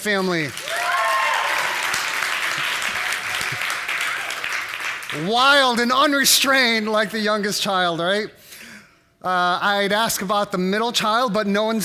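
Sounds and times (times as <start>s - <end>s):
speech: 0.0s - 0.6s, 5.1s - 8.4s, 9.2s - 11.8s
audience clapping hands: 0.0s - 5.9s.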